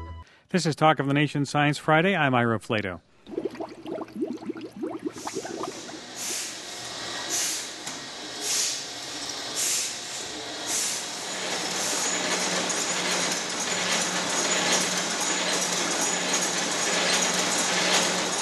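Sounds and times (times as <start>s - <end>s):
speech: 0.5s - 3.1s
beer fermentation bubbling and popping: 3.2s - 6.2s
hissing bursts: 5.0s - 7.8s
clattering bottling machinery: 5.7s - 18.3s.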